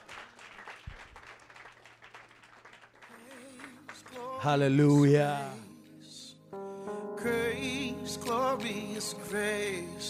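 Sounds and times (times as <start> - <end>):
audience clapping: 0.0 - 4.8
speech: 4.4 - 5.6, 7.2 - 10.0.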